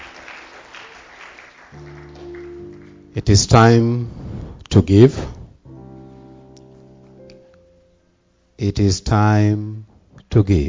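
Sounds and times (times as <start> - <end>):
audience hand clapping: 0.0 - 3.1
sustained low keyboard chord: 1.7 - 4.1, 4.8 - 8.7
speech: 3.2 - 4.2, 4.8 - 5.4, 8.6 - 10.6.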